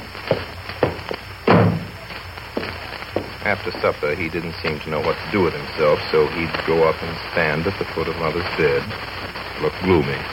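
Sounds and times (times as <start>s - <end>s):
door being shut: 0.9s - 2.0s
speech: 3.4s - 10.3s.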